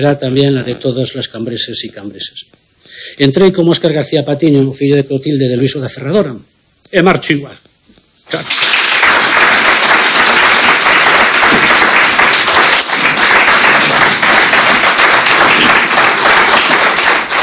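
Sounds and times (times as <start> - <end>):
speech: 0.0 - 7.7, 8.3 - 8.6
crowd ovation applause: 8.3 - 17.4.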